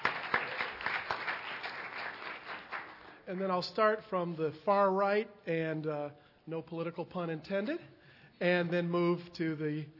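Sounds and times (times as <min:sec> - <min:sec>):
audience applause: 0:00.0 - 0:03.1
speech: 0:03.3 - 0:09.9.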